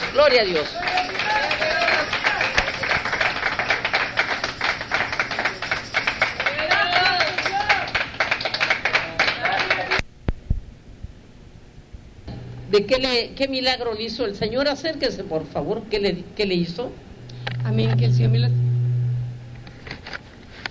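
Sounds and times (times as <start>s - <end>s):
audience applause: 0.0s - 10.0s
speech: 0.2s - 1.7s, 12.7s - 17.1s, 17.7s - 18.6s
voices cheering: 0.6s - 3.5s, 6.4s - 8.0s.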